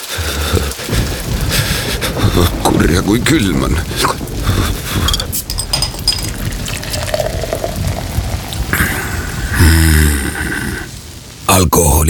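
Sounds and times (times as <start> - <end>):
heavy summer rain pouring: 0.0 - 12.0
gurgling liquid splash: 0.9 - 9.3
speech: 2.8 - 4.2.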